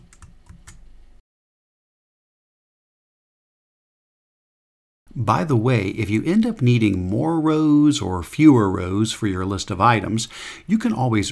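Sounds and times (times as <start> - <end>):
typing on a computer keyboard: 0.0 - 0.9
speech: 5.2 - 11.3.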